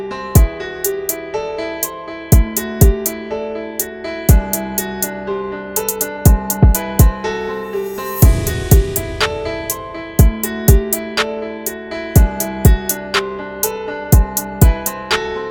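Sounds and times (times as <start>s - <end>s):
rap beat: 0.4s - 1.2s, 2.3s - 3.1s, 4.3s - 5.1s, 5.8s - 11.3s, 12.2s - 13.3s, 14.1s - 15.3s.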